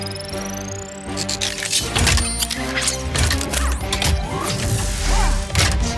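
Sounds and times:
robot vehicle transformation sound effect: 0:00.0 - 0:05.9.

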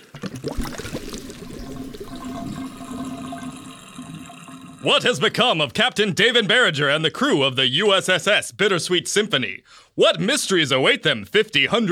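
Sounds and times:
water draining from a spaceship bridge: 0:00.0 - 0:05.5
speech: 0:04.8 - 0:11.9.

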